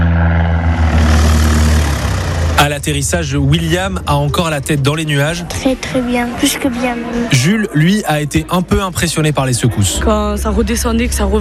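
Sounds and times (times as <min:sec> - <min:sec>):
small propeller aircraft engine drone at takeoff: 0:00.0 - 0:04.9
speech: 0:02.6 - 0:11.3.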